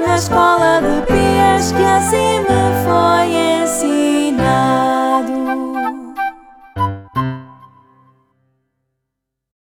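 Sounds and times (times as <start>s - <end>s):
person singing: 0.0s - 7.6s
instrumental anthem: 0.0s - 8.3s.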